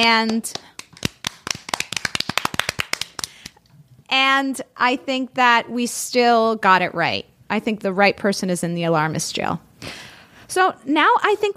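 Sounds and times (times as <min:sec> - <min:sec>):
speech: 0:00.0 - 0:00.7, 0:04.1 - 0:11.5
clapping: 0:00.2 - 0:03.6.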